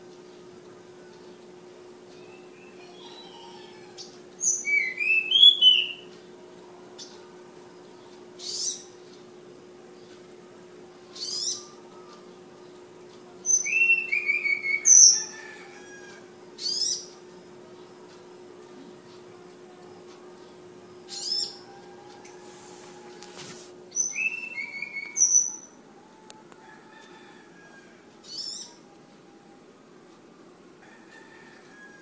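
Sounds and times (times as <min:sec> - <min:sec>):
faint hum: 0:00.0 - 0:32.0
flowerpecker singing: 0:02.2 - 0:06.1, 0:06.9 - 0:09.0, 0:11.0 - 0:12.7, 0:13.3 - 0:17.8, 0:21.0 - 0:21.7, 0:23.9 - 0:25.8, 0:28.2 - 0:28.9.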